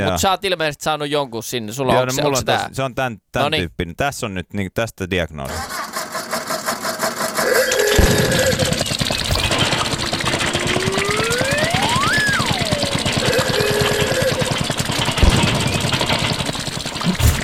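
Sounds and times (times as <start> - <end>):
speech: 0.0 - 5.8
older Opel Mokka engine running with a rough idle: 5.6 - 17.4
whining tone: 7.4 - 17.4
sharp knocks: 7.7 - 17.4.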